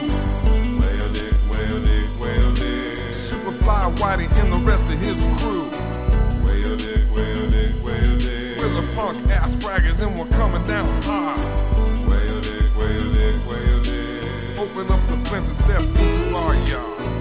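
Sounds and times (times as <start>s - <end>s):
funky music: 0.0s - 17.2s.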